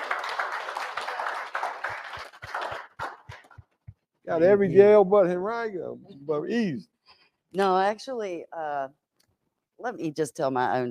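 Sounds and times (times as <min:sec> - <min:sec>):
audience clapping welcoming a speaker at Henrico Jail West: 0:00.0 - 0:04.0
speech: 0:04.3 - 0:06.9, 0:07.5 - 0:09.0, 0:09.8 - 0:10.8.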